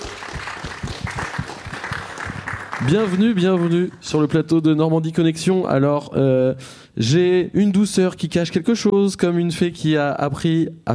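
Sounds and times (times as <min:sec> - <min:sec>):
studio audience applauding: 0:00.0 - 0:04.1
speech: 0:02.8 - 0:10.9.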